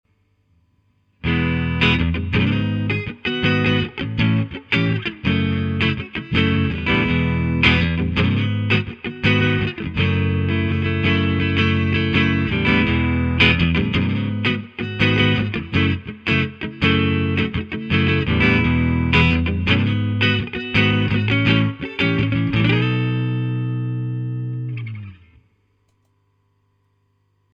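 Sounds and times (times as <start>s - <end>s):
guitar amp recorded with Sanken CU-44x Mk2 90 degrees off axis: 1.2s - 25.5s.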